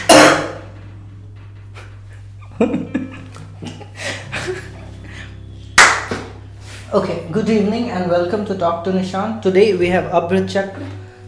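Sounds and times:
laughter: 2.4 - 5.3
speech: 2.6 - 3.0, 6.9 - 11.0
hand clap: 5.8 - 6.4.

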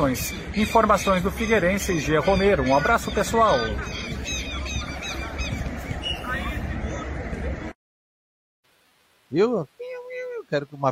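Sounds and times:
speech: 0.0 - 4.4, 9.3 - 9.8, 10.5 - 10.9
southern lapwing calls: 0.3 - 6.6.

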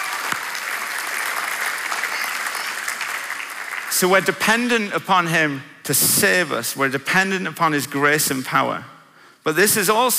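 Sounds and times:
audience applause: 0.0 - 4.3
speech: 4.0 - 10.1.

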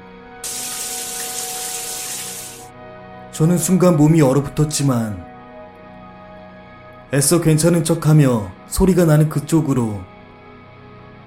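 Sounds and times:
shower running water: 0.4 - 2.7
speech: 3.4 - 5.3, 7.1 - 10.1.

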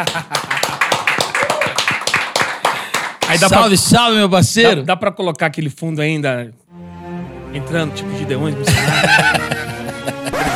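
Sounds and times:
speech: 0.0 - 0.4, 3.3 - 6.7, 7.5 - 10.2
laughter: 0.0 - 3.8, 8.6 - 10.5
studio audience clapping: 0.0 - 4.1.

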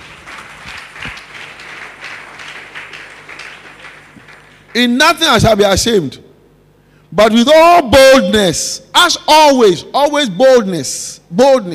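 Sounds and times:
audience clapping: 0.0 - 5.3
speech: 4.7 - 6.2, 7.1 - 11.7.

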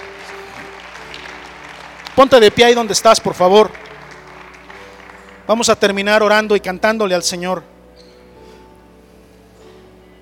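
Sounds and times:
audience applauding: 0.0 - 6.1
speech: 2.2 - 3.8, 5.5 - 7.7.

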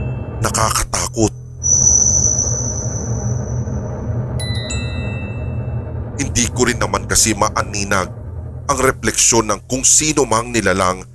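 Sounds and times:
brief cluster of electronic tones: 0.0 - 5.9
creepy rumbling elevator: 0.0 - 11.1
thin high-pitched whine: 0.0 - 11.1
speech: 0.4 - 1.4, 6.4 - 11.1.

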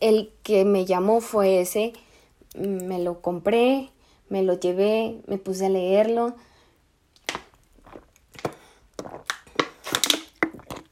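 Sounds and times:
speech: 0.0 - 6.5
person drinking water: 7.2 - 10.9.

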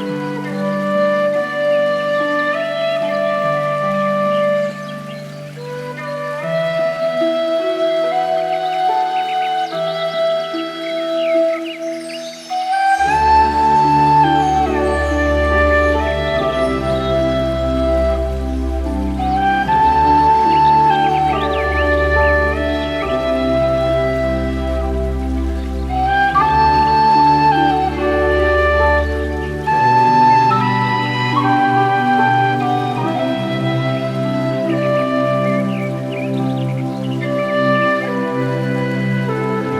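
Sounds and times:
chakra meditation music of slow sustained tones: 0.0 - 39.7.

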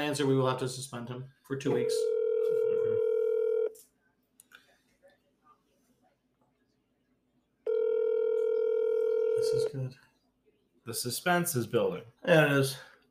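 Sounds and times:
speech: 0.1 - 2.1, 9.7 - 10.1, 10.9 - 12.9
ringback tone of an outgoing phone call: 1.8 - 3.7, 7.7 - 9.7.

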